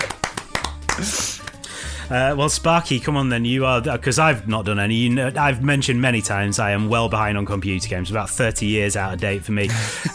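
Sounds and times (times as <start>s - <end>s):
hands clapping: 0.0s - 1.7s
speech: 1.0s - 1.3s, 2.1s - 10.1s.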